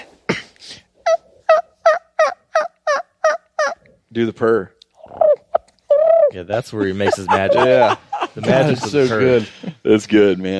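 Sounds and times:
man imitating turkey gobble with his voice alone: 0:01.0 - 0:03.8, 0:05.0 - 0:08.0
speech: 0:04.2 - 0:04.8, 0:06.3 - 0:10.5
laughter: 0:06.6 - 0:09.8.

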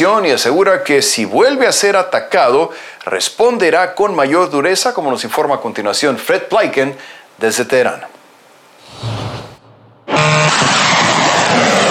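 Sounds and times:
speech: 0:00.0 - 0:08.2
Iranian combat drones flying at night: 0:08.8 - 0:11.8.

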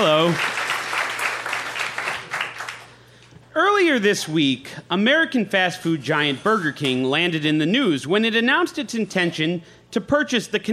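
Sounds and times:
speech: 0:00.0 - 0:00.6, 0:03.9 - 0:10.7
audience at the Green Mill applauding to welcome a comedian: 0:00.0 - 0:02.9.

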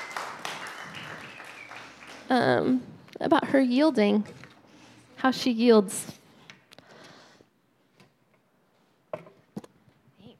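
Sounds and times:
audience clapping: 0:00.0 - 0:02.8
speech: 0:02.3 - 0:04.4, 0:05.2 - 0:06.2.

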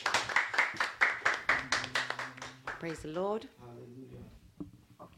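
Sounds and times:
audience clapping in welcome: 0:00.0 - 0:03.2
speech: 0:02.8 - 0:04.4.

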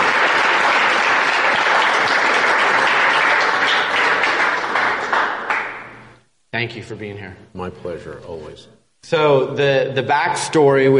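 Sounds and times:
crowd applauding: 0:00.0 - 0:06.2
speech: 0:06.6 - 0:10.9.

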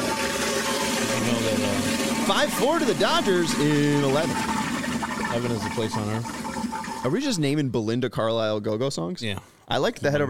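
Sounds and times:
toilet flushing: 0:00.0 - 0:08.6
speech: 0:01.5 - 0:04.5, 0:05.3 - 0:06.4, 0:07.0 - 0:10.2.

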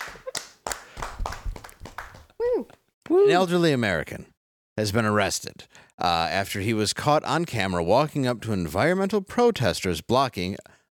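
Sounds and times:
hand clap: 0:00.0 - 0:02.4
speech: 0:03.1 - 0:10.8.

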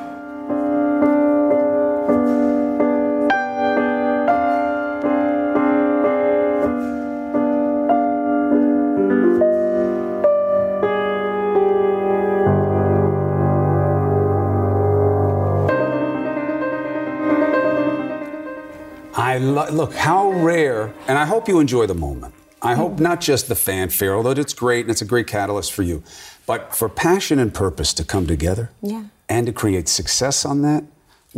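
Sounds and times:
instrumental music: 0:00.0 - 0:24.4
speech: 0:19.6 - 0:31.3.

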